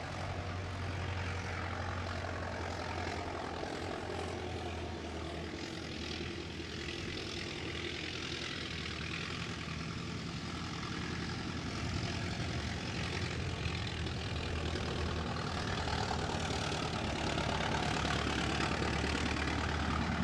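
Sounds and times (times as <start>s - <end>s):
Ford Model T driving away: 0.0s - 20.2s.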